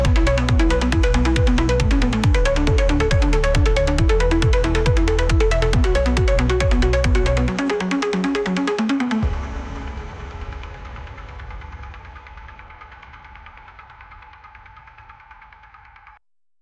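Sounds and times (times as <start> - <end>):
techno music: 0.0 - 10.6.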